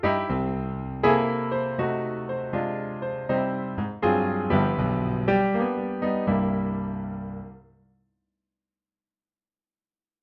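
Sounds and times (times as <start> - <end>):
blues on upright piano: 0.0 - 7.6.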